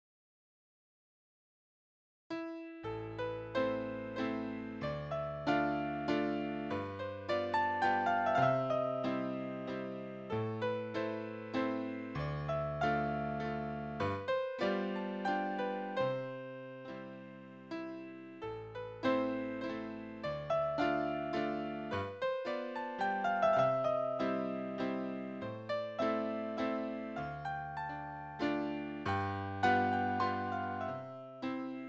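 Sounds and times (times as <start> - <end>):
waltz in A minor: 2.5 - 31.8.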